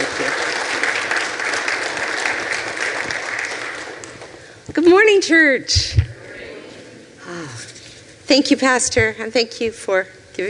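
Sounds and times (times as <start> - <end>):
audience clapping hands: 0.0 - 4.6
speech: 5.0 - 6.0, 8.3 - 10.4.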